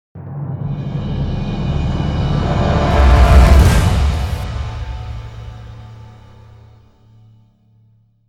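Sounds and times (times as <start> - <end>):
signal sting: 0.7 - 6.4.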